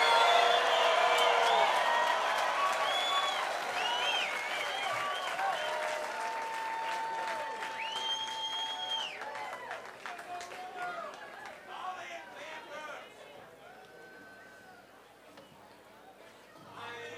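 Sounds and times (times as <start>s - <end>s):
high whistles and scattered cheers: 0.0s - 11.3s, 13.6s - 14.9s
audience applause after live bluegrass set: 0.0s - 12.2s.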